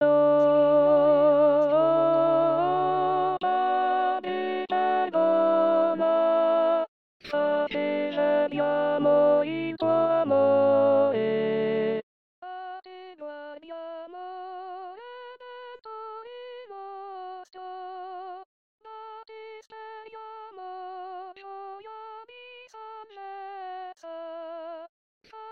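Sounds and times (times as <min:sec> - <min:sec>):
contralto voices singing: 0:00.0 - 0:06.5, 0:07.3 - 0:12.0.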